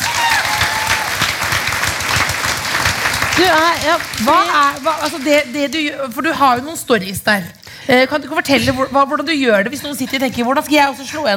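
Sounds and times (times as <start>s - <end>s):
audience applause: 0.0s - 5.6s
speech: 3.4s - 11.3s.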